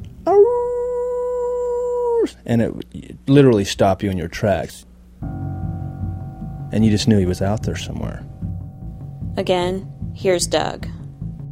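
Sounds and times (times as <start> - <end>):
dog howling: 0.3 - 2.4
speech: 2.2 - 5.5, 6.7 - 8.3, 9.4 - 11.0.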